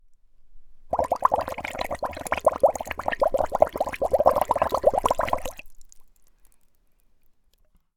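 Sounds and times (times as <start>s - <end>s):
water bubbling in a wood bowl: 0.9s - 6.2s.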